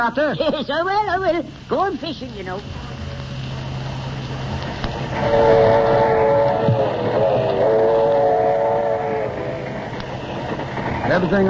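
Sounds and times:
speech: 0.0s - 3.0s, 5.1s - 6.0s, 11.1s - 11.4s
train rolling along the rails: 2.6s - 11.4s
sustained horn-like tone: 5.1s - 10.6s.

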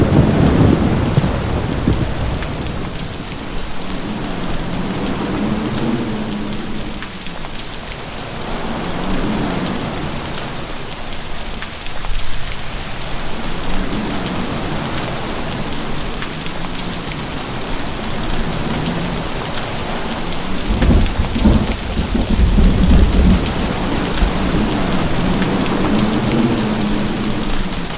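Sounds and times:
thunder: 0.0s - 3.2s, 20.5s - 27.6s
heavy rain: 0.0s - 27.9s.

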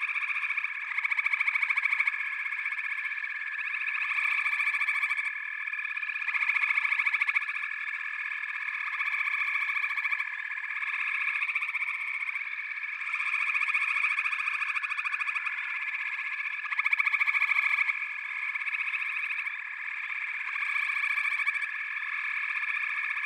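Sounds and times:
frog chorus trilling: 0.0s - 23.2s.

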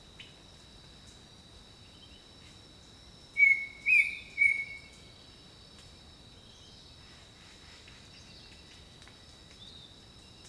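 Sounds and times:
steady high insect drone: 0.0s - 10.4s
bird song of three level whistled notes: 3.4s - 4.9s.

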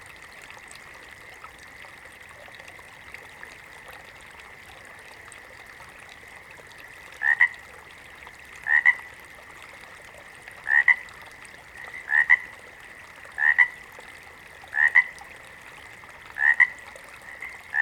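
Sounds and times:
water frog giving short paired croaks: 7.2s - 7.6s, 8.6s - 9.1s, 10.6s - 11.1s, 11.8s - 12.5s, 13.4s - 13.8s, 14.7s - 15.2s, 16.4s - 17.8s.

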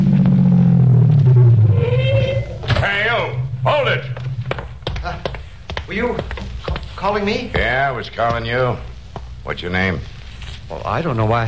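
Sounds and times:
faint higher rising tone: 0.0s - 4.8s
car engine rumble driving up from behind on a road: 0.0s - 4.9s
speech: 6.0s - 6.3s, 7.0s - 8.9s, 9.5s - 10.1s, 10.7s - 11.4s.

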